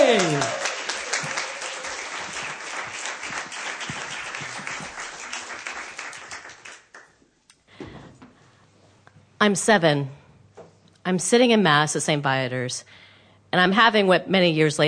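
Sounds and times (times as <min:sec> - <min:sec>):
audience applause welcoming a performer to the stage: 0:00.0 - 0:07.2
speech: 0:09.4 - 0:10.2, 0:11.1 - 0:14.8.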